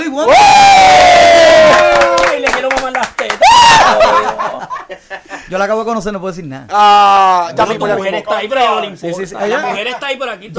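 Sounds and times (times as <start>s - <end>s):
speech: 0.2s - 0.5s, 5.5s - 10.5s
crowd cheering and applauding: 0.6s - 4.5s
laughter: 3.0s - 5.5s, 9.4s - 10.3s.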